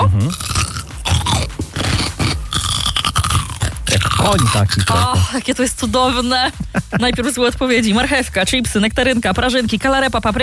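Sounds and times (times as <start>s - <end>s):
person biting into and chewing a pickled cucumber: 0.2s - 5.1s
speech: 4.3s - 10.4s.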